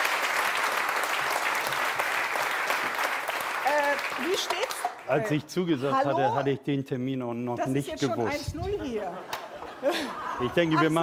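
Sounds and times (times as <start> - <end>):
audience applause: 0.0 - 5.2
speech: 4.0 - 11.0
laughter: 9.0 - 11.0.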